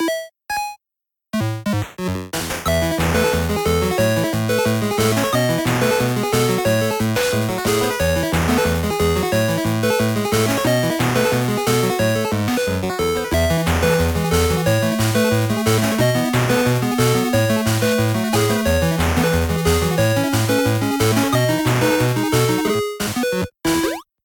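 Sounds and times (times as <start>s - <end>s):
8-bit ringtone: 1.4s - 24.0s.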